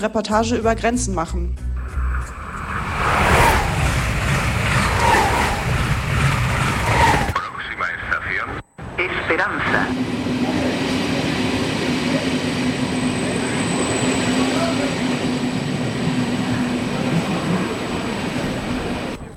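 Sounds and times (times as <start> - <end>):
speech: 0.0 - 1.7
train station ambience: 1.8 - 19.3.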